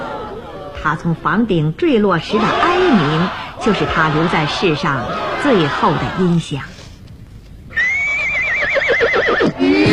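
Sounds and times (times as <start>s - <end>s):
speech: 0.8s - 6.7s
horse whinnying as its rider leaves alone: 7.7s - 9.8s.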